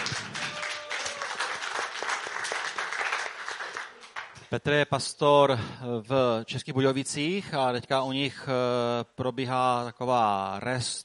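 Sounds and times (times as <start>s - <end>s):
audience applause: 0.0s - 4.4s
speech: 4.5s - 11.0s.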